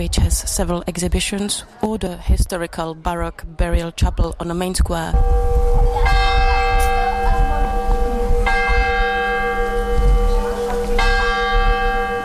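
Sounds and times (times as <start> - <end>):
speech: 0.0 - 6.2
church tower clock bell of St Wenceslas Church in Mikulov: 5.2 - 12.2.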